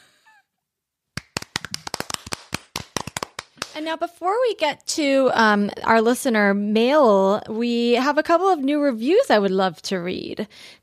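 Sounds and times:
hands clapping: 0:01.2 - 0:03.8
speech: 0:03.8 - 0:10.8.

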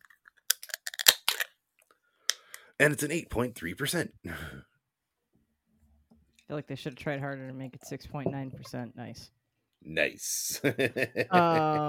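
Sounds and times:
beer can cracked open: 0:00.4 - 0:01.5
speech: 0:02.8 - 0:04.7, 0:06.5 - 0:11.8
laughter: 0:10.4 - 0:11.8.

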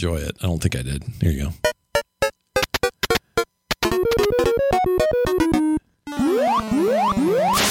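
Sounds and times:
speech: 0:00.0 - 0:01.7
arcade video game sound effects: 0:01.6 - 0:07.6.

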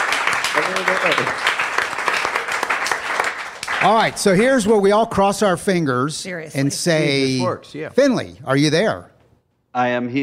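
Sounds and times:
audience clapping: 0:00.0 - 0:04.8
speech: 0:00.6 - 0:01.5, 0:03.8 - 0:09.1, 0:09.8 - 0:10.2.

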